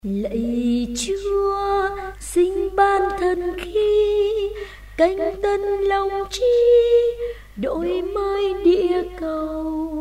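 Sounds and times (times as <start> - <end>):
soprano voice: 0.0 - 9.9.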